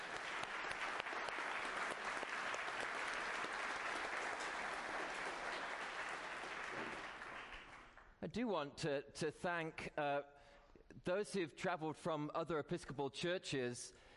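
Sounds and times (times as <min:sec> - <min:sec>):
crowd applauding: 0:00.0 - 0:08.1
speech: 0:08.3 - 0:14.1.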